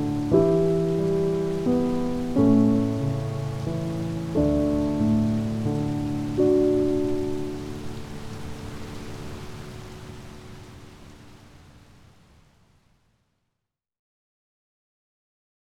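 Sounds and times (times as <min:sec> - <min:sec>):
calming piano music: 0:00.0 - 0:11.0
rain: 0:00.0 - 0:13.4.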